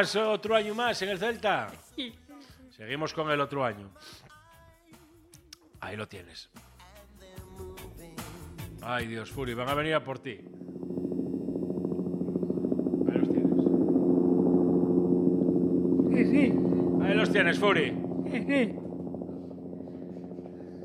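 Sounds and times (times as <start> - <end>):
speech: 0.0 - 4.3, 5.8 - 6.7, 8.8 - 11.0, 17.4 - 18.8
helicopter: 10.3 - 20.8.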